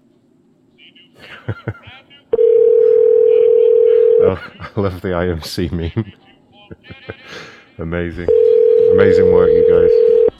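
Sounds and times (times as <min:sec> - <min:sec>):
laughter: 0:01.2 - 0:02.1, 0:04.2 - 0:07.8
telephone line tone during an unanswered call: 0:02.4 - 0:04.4, 0:08.2 - 0:10.3
speech: 0:04.3 - 0:06.2, 0:06.9 - 0:10.2.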